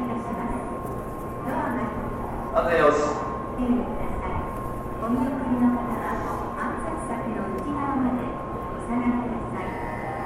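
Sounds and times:
constant high tone like a machine hum: 0.0s - 10.2s
murmur of people talking at a train station in Japan: 0.0s - 10.2s.

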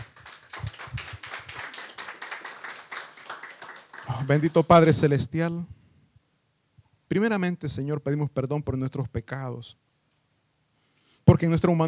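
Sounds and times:
audience applause: 0.0s - 4.9s
speech: 4.2s - 5.8s, 7.1s - 9.8s, 11.3s - 11.8s.

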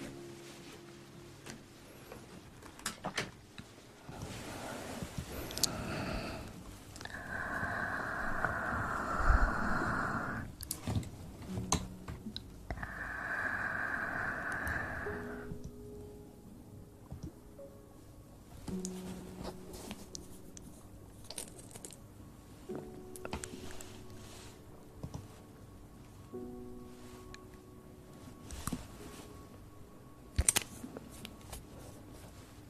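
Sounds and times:
low steady hum: 0.0s - 32.6s
ear blowing, breathy gusts of air: 4.4s - 10.5s, 12.8s - 15.6s.

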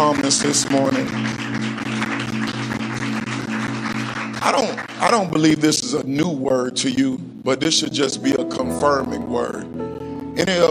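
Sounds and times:
audience clapping hands: 0.0s - 5.8s
speech: 0.3s - 1.8s, 4.4s - 10.6s.

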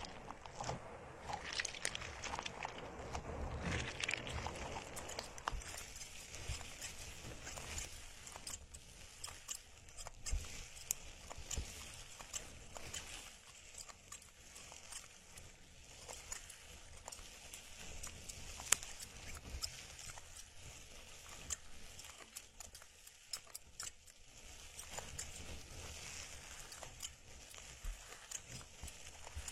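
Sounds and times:
plants rubbed and swept around the ears: 0.0s - 29.5s.

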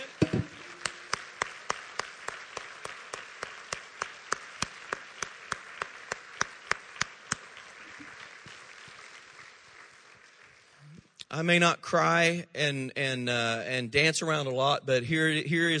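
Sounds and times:
crowd clapping in rhythm: 0.0s - 11.3s
speech: 11.4s - 15.7s.

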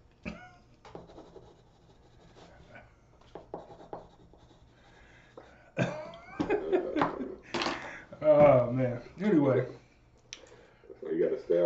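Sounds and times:
pen writing on paper: 0.9s - 2.7s, 3.3s - 5.0s
laughter: 5.8s - 8.0s
speech: 8.6s - 9.8s.

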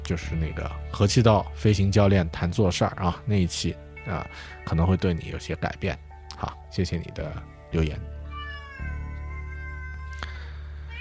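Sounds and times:
speech: 0.1s - 8.1s
cat meowing plaintively: 8.2s - 10.9s.

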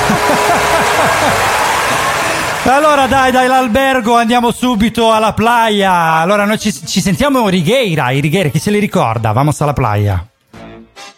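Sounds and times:
laughter: 0.0s - 3.2s
crowd applause: 0.0s - 4.0s
speech: 2.6s - 10.3s.

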